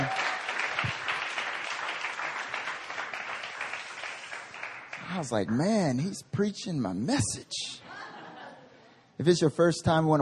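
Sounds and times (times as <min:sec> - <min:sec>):
church audience applause for a pastor at a prayer meeting: 0:00.0 - 0:05.7
speech: 0:05.2 - 0:07.8, 0:09.2 - 0:10.2
laughter: 0:07.8 - 0:08.8.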